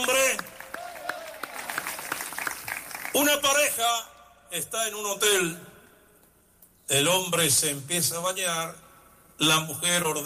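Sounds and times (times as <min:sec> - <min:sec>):
congregation clapping during a Spanish-language worship service: 0:00.0 - 0:03.6
speech: 0:03.2 - 0:05.7, 0:06.9 - 0:08.8, 0:09.4 - 0:10.2.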